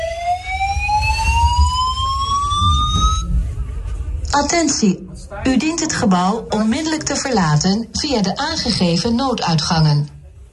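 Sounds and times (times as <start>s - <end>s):
building evacuation alarm with rising whooping tone: 0.0s - 3.4s
low rumbling background: 0.0s - 10.5s
speech: 4.4s - 10.2s.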